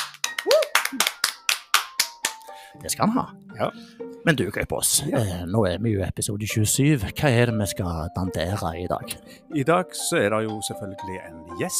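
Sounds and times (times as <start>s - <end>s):
sharp hand claps of congratulation: 0.0s - 2.6s
speech: 2.8s - 11.7s.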